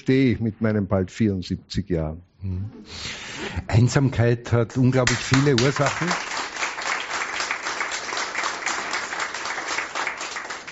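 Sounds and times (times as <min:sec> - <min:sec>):
speech: 0:00.0 - 0:06.3
audience applause: 0:05.0 - 0:10.6.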